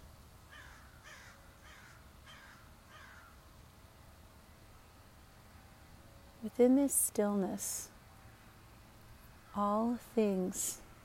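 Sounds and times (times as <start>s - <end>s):
birds calling outdoors: 0.5s - 3.4s
speech: 6.4s - 7.9s, 9.6s - 10.8s.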